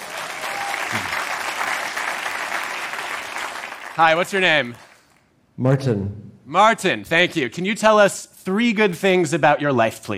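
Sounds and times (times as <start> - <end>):
audience applause: 0.0 - 5.1
speech: 4.0 - 4.8, 5.6 - 10.1.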